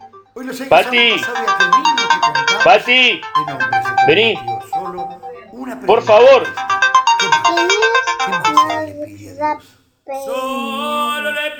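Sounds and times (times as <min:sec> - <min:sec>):
speech: 0:00.4 - 0:04.6, 0:05.7 - 0:06.7, 0:09.4 - 0:11.5
phone ringtone for an incoming call: 0:00.8 - 0:09.0.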